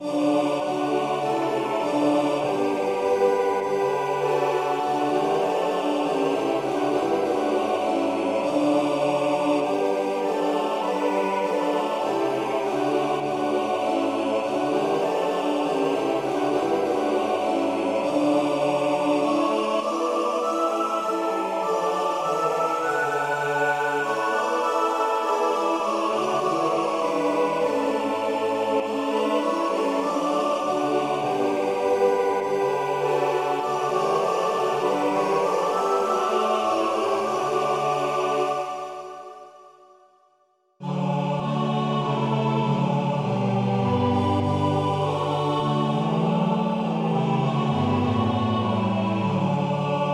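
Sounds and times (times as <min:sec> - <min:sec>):
hymns played on several instruments: 0:00.0 - 0:40.1, 0:40.8 - 0:50.1.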